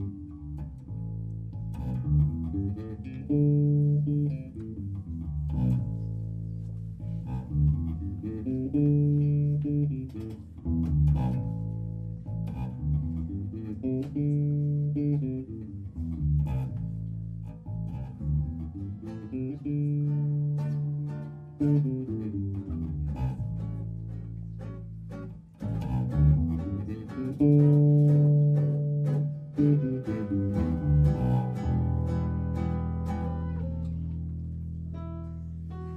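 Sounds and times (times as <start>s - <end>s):
jazz standard improvisation: 0.0s - 35.9s.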